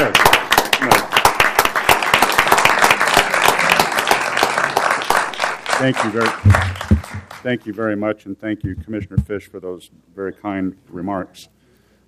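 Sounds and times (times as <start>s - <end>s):
audience applause: 0.0s - 7.4s
speech: 5.8s - 11.6s.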